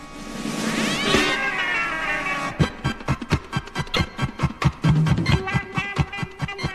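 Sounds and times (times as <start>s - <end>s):
cat yowling meow: 0.8s - 2.6s
rhythmic percussive thumps and clatter: 2.6s - 6.7s.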